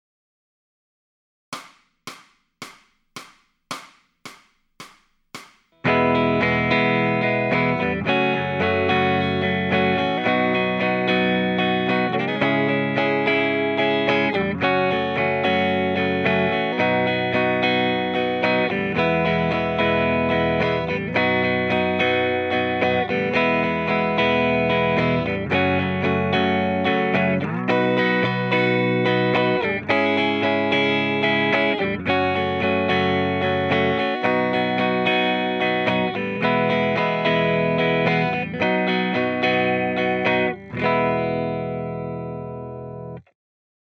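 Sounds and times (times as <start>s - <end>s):
electric guitar lead backing track: 5.8s - 43.2s.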